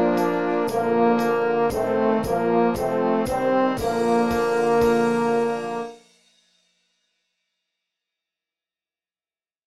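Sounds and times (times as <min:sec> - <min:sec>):
concert duet medley: 0:00.0 - 0:05.9.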